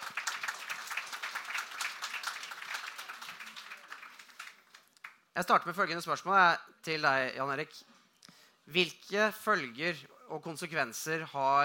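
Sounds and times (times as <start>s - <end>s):
audience applause: 0.0s - 5.2s
speech: 5.4s - 7.9s, 8.7s - 11.6s.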